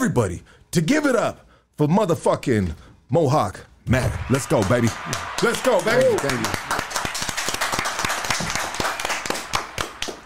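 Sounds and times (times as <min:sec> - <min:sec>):
speech: 0:00.0 - 0:06.8
applause: 0:04.3 - 0:10.2.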